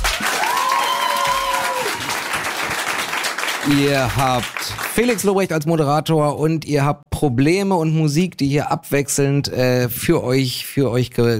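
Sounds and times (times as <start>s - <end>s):
live audience applauding: 0.0s - 5.4s
speech: 3.6s - 11.3s.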